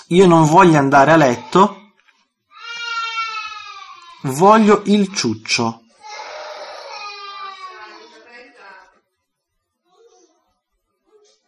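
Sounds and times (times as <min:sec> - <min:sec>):
speech: 0:00.1 - 0:01.8, 0:04.2 - 0:05.8
young girl crying at bedtime: 0:02.6 - 0:04.1, 0:06.0 - 0:08.1.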